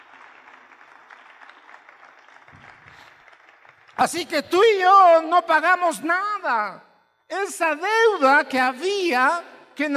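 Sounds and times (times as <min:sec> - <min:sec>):
audience applause: 0:00.0 - 0:04.0
speech: 0:04.0 - 0:09.9.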